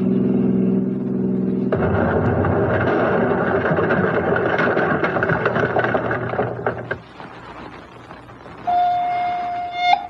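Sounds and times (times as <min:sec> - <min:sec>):
engine humming: 0:00.0 - 0:10.0
loud explosion: 0:01.7 - 0:07.0.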